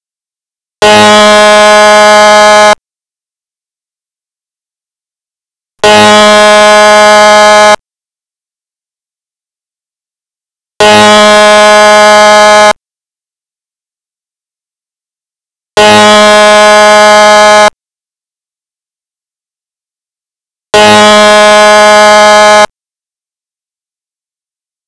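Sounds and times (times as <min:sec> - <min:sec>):
dam break alert: 0:00.8 - 0:02.8, 0:05.8 - 0:07.8, 0:10.8 - 0:12.8, 0:15.8 - 0:17.7, 0:20.8 - 0:22.7.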